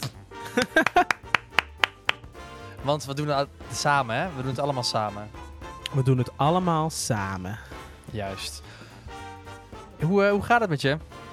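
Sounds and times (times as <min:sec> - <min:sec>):
hand claps: 0:00.0 - 0:02.4
person laughing: 0:00.4 - 0:01.6
speech: 0:02.8 - 0:08.8, 0:10.0 - 0:11.1.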